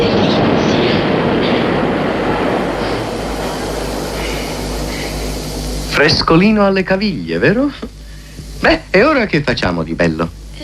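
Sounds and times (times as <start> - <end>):
subway train rushing through underground tunnel: 0.0 - 5.9
broad hiss of air: 0.0 - 10.6
speech: 6.0 - 8.0, 8.6 - 10.4.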